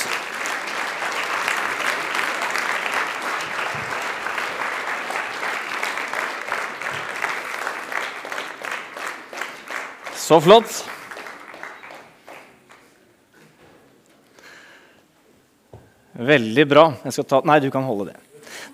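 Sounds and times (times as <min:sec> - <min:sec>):
audience applause: 0:00.0 - 0:12.9
speech: 0:10.3 - 0:10.9, 0:16.2 - 0:18.2.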